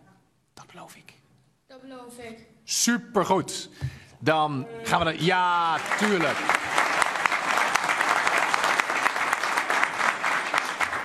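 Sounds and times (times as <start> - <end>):
speech: 0.8 - 6.7
applause: 4.9 - 11.0.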